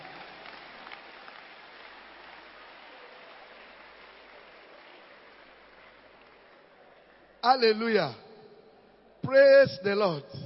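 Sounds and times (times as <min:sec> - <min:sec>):
church audience clapping hands: 0:00.0 - 0:07.4
speech: 0:07.4 - 0:08.2, 0:09.3 - 0:10.4.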